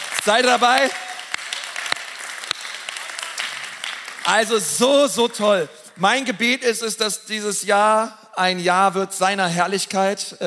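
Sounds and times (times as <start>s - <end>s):
crowd applauding: 0.0s - 4.8s
speech: 0.2s - 1.1s, 4.3s - 10.4s.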